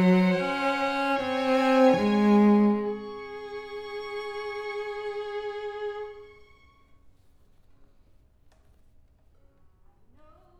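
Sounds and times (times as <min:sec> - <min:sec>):
cello: 0:00.0 - 0:07.2.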